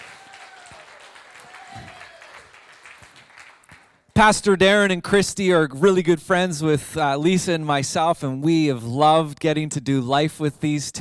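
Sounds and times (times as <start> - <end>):
church congregation at Caldwell Church applauding: 0.0 - 4.1
speech: 4.2 - 10.9.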